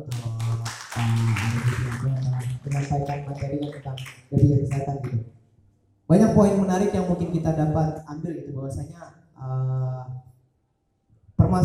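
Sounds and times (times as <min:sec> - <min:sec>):
audience applause: 0:00.1 - 0:04.9
speech: 0:01.0 - 0:05.4, 0:06.1 - 0:10.2, 0:11.5 - 0:11.6.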